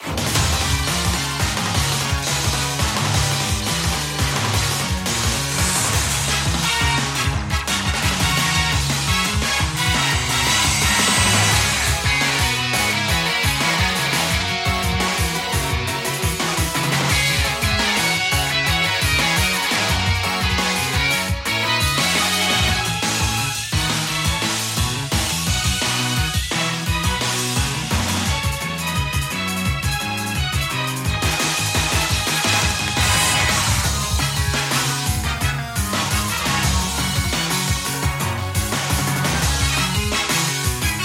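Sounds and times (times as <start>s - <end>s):
battle music: 0.0s - 41.0s.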